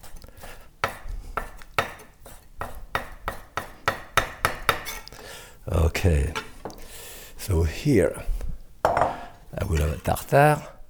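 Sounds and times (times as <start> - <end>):
knife dicing raw salmon: 0.0 - 5.1
speech: 6.0 - 6.4, 7.4 - 8.3, 9.7 - 10.8.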